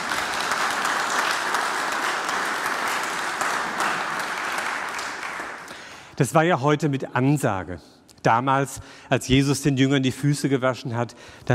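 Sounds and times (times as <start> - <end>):
audience clapping: 0.0 - 6.0
speech: 6.2 - 11.5.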